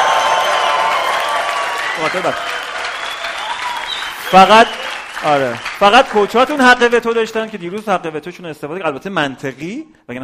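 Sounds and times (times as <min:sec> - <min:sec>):
shrill cheers and whoops: 0:00.0 - 0:05.2
crowd applause: 0:00.0 - 0:06.9
speech: 0:02.0 - 0:02.6, 0:04.3 - 0:10.2.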